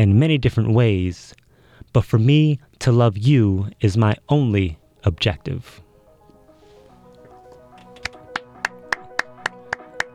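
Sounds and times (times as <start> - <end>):
speech: 0.0 - 5.8
small applause after a poem: 7.2 - 10.1.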